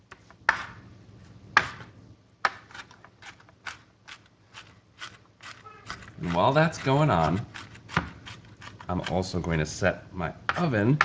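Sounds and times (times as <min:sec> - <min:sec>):
knife mincing food in a home kitchen: 0:01.6 - 0:09.2, 0:10.5 - 0:11.0
speech: 0:06.2 - 0:07.5, 0:08.9 - 0:11.0.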